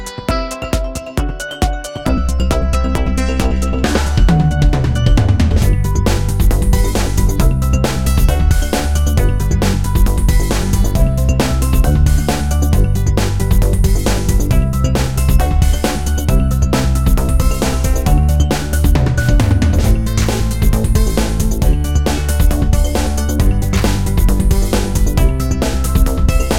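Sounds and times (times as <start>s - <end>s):
race music: 0.4s - 26.5s.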